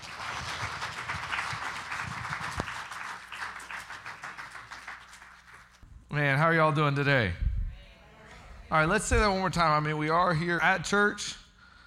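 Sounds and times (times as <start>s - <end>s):
audience round of applause: 0.0s - 5.8s
speech: 6.2s - 7.4s, 8.7s - 11.4s.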